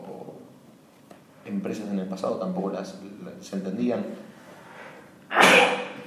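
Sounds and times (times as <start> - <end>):
speech: 1.7 - 4.2
sneeze: 5.3 - 6.0.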